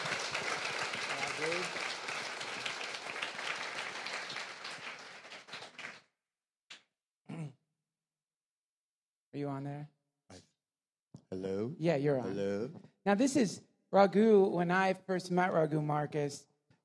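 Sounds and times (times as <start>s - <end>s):
audience applause: 0.0s - 6.0s
crowd cheering: 0.0s - 6.0s
speech: 9.4s - 10.4s, 11.4s - 16.5s.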